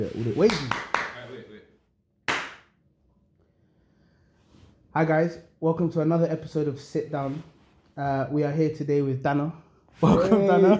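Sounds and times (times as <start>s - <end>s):
speech: 0.0s - 0.9s, 5.0s - 10.7s
hand clap for syncing cameras: 0.4s - 1.4s, 2.2s - 2.8s.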